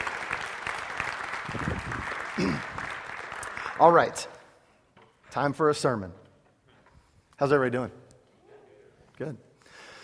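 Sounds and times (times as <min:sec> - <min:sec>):
audience applause: 0:00.0 - 0:04.2
speech: 0:02.4 - 0:02.7, 0:03.8 - 0:04.4, 0:05.3 - 0:06.2, 0:07.4 - 0:08.0, 0:09.2 - 0:09.4.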